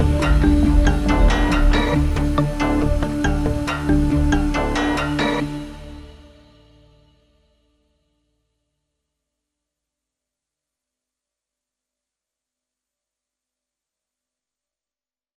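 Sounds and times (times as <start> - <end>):
noise: 0.0 - 5.5.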